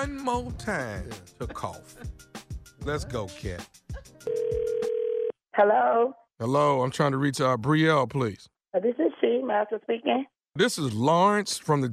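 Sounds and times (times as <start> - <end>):
speech: 0.0 - 2.2, 2.8 - 4.4, 5.6 - 11.9
telephone ringback tone: 4.2 - 5.3.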